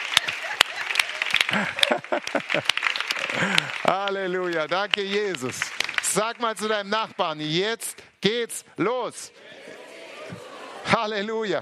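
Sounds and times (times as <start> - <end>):
laughter: 0.0 - 3.9, 9.2 - 11.2
audience applause: 0.0 - 7.4
speech: 1.5 - 11.6.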